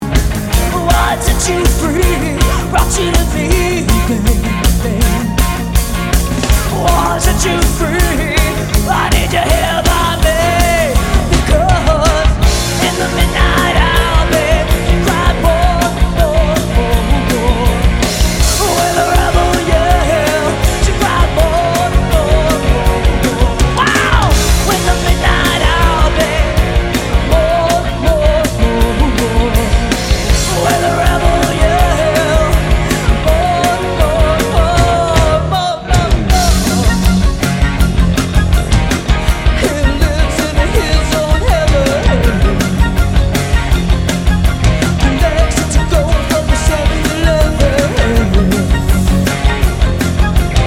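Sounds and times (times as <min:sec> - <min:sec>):
cover band playing: 0:00.0 - 0:50.6.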